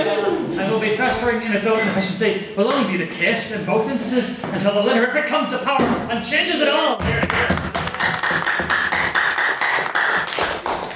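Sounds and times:
speech: 1.0s - 8.4s
audience applause: 7.3s - 10.9s.

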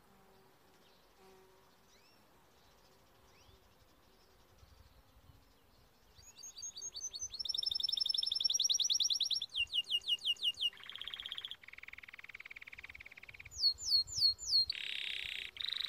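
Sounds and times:
Timbrado canary singing: 6.2s - 15.8s.

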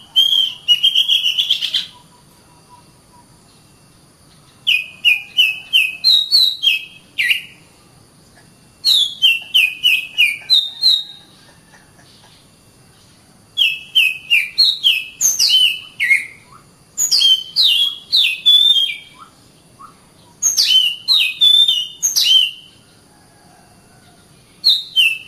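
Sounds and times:
Oriental magpie-robin song: 0.0s - 3.6s, 4.3s - 7.7s, 8.4s - 11.4s, 13.6s - 22.8s, 24.5s - 25.2s.

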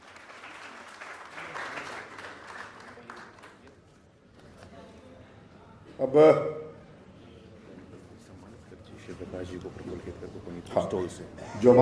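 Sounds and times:
crowd clapping hands: 0.0s - 3.8s
speech: 6.0s - 6.6s, 11.0s - 11.8s.

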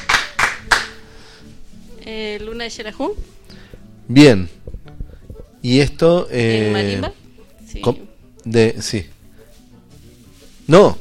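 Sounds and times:
applause: 0.0s - 1.0s
speech: 2.1s - 3.4s, 4.1s - 4.6s, 5.6s - 9.1s, 10.7s - 11.0s.

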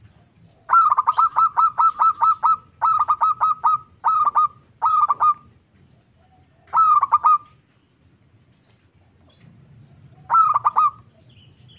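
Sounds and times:
local-type zebra dove cooing: 0.4s - 7.6s, 9.9s - 11.3s.

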